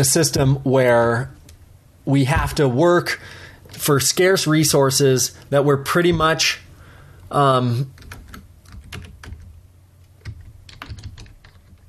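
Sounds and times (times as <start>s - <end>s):
speech: 0.0s - 1.4s, 2.0s - 6.6s, 7.3s - 8.0s
quick typing on a computer keyboard: 7.9s - 9.5s, 10.2s - 11.8s.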